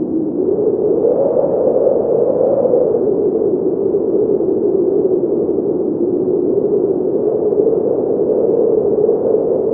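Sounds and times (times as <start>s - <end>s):
wind heard inside: 0.0s - 9.7s.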